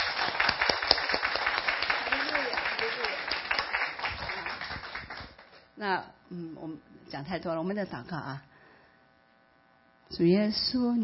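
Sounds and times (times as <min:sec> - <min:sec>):
audience clapping hands: 0:00.0 - 0:05.7
speech: 0:05.8 - 0:08.5, 0:10.1 - 0:11.0.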